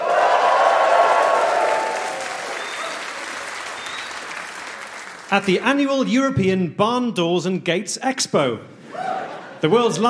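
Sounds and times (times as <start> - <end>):
live audience applauding: 0.0 - 5.9
speech: 5.3 - 8.8, 9.6 - 10.0
laughter: 8.8 - 10.0.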